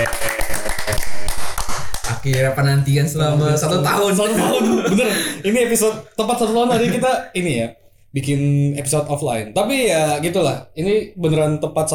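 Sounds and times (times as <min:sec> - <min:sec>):
hand clapping: 0:00.0 - 0:02.7
speech: 0:02.2 - 0:11.9
laughter: 0:03.8 - 0:07.2.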